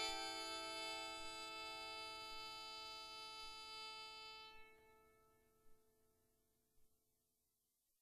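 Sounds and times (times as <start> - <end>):
tenor bowed psaltery: 0.0 - 5.8.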